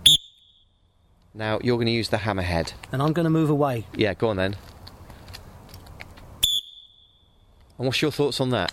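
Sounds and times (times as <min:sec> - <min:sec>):
old dirty pea whistle blown: 0:00.0 - 0:00.8, 0:06.4 - 0:07.3
speech: 0:01.4 - 0:04.7, 0:07.8 - 0:08.7.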